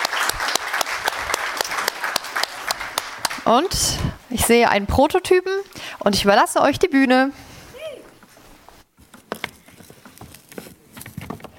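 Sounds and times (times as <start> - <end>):
audience applause: 0.0 - 3.6
speech: 3.5 - 7.4.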